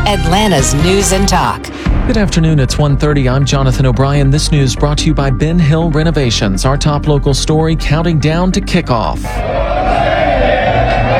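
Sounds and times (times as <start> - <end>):
speech: 0.1 - 10.1
fans cheering and shouting downtown: 9.3 - 11.1.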